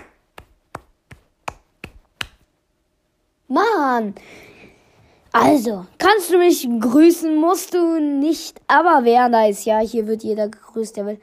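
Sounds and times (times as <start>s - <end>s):
self-applause hand clapping: 0.0s - 2.5s
speech: 3.5s - 4.5s, 5.3s - 11.2s.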